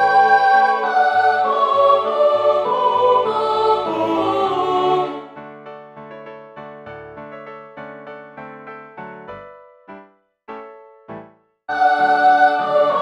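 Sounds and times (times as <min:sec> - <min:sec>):
ensemble singing Gypsy songs tutti: 0:00.0 - 0:05.4, 0:11.7 - 0:13.0.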